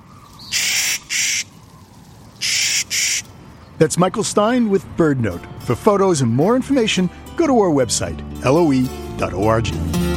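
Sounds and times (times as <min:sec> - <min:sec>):
Clark's nutcracker call: 0:00.0 - 0:03.3
speech: 0:03.8 - 0:09.9.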